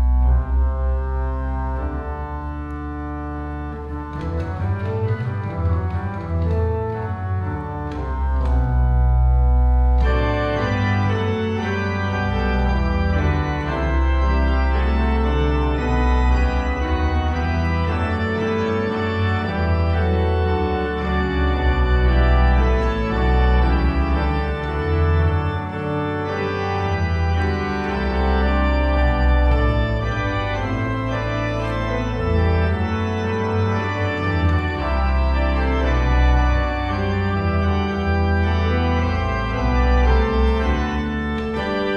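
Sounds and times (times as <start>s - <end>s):
organ fantasy piece: 0.0s - 41.9s.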